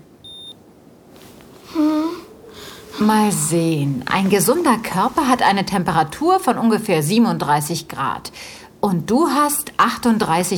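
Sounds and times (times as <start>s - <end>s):
ear thermometer beeping after measuring temperature: 0.2s - 0.6s
speech: 3.0s - 10.5s.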